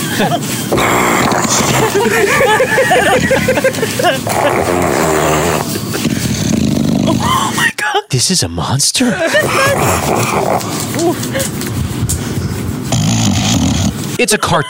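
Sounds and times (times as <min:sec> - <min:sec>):
laughter: 0:00.0 - 0:06.3, 0:09.0 - 0:11.7
speech: 0:00.2 - 0:05.8, 0:07.1 - 0:12.3, 0:14.2 - 0:14.6
English bulldog snoring: 0:00.7 - 0:03.4, 0:04.2 - 0:07.3, 0:09.4 - 0:10.9, 0:12.9 - 0:14.0.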